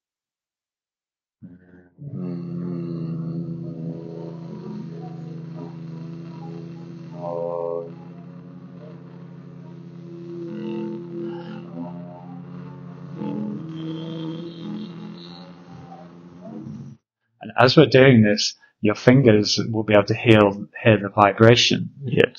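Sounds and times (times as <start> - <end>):
group humming with closed mouths: 1.4 - 17.8
speech: 17.6 - 22.3.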